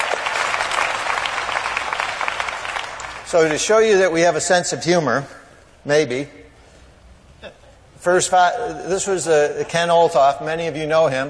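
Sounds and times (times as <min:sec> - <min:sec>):
audience applause at a conference: 0:00.0 - 0:03.6
speech: 0:03.3 - 0:06.4, 0:07.4 - 0:11.2.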